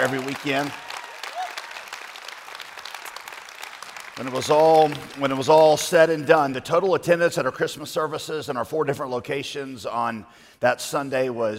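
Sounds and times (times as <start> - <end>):
speech: 0.0 - 0.9, 4.2 - 11.5
church congregation at the Capitol Hill campus clapping: 0.0 - 6.4.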